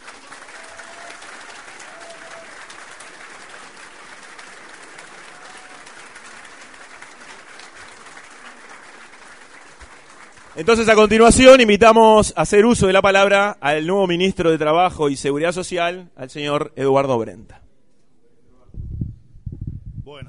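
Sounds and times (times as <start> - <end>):
audience applause at an official ceremony: 0.0 - 11.8
speech: 10.6 - 17.6.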